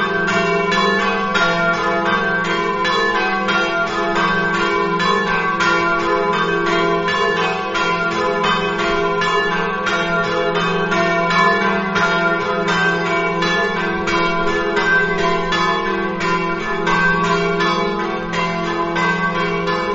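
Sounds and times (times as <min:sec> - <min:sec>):
bells in Palma: 0:00.0 - 0:19.9.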